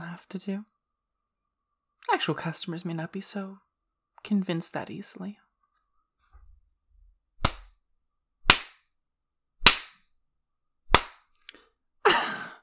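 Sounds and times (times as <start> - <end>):
speech: 0.2 - 0.8, 2.1 - 5.4
hand smacking skin: 7.4 - 7.7, 8.5 - 8.8, 9.6 - 10.0, 10.9 - 11.2.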